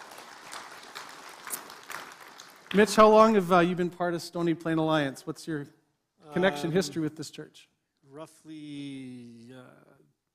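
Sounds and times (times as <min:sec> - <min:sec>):
church congregation applauding a guest: 0:00.0 - 0:03.7
speech: 0:02.7 - 0:10.0.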